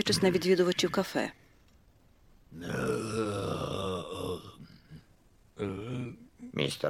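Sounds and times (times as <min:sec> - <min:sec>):
speech: 0:00.0 - 0:01.4, 0:02.5 - 0:03.1, 0:05.6 - 0:05.8, 0:06.6 - 0:06.8
human guttural throat growl imitating a bear: 0:02.5 - 0:06.3.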